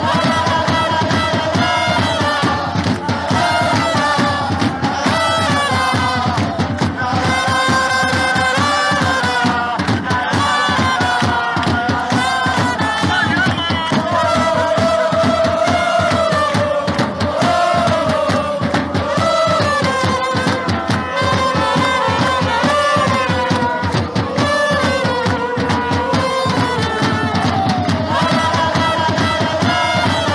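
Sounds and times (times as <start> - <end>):
football crowd chanting: 0.0 - 30.3.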